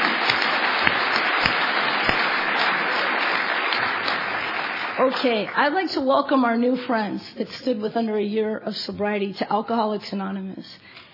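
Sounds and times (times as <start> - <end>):
audience applause: 0.0 - 5.8
speech: 5.1 - 11.0.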